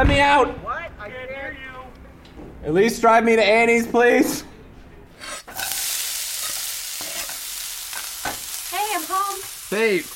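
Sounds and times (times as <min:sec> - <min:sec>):
speech: 0:00.1 - 0:01.3, 0:02.6 - 0:04.5, 0:09.7 - 0:10.1
bacon sizzling in a pan: 0:05.5 - 0:10.1.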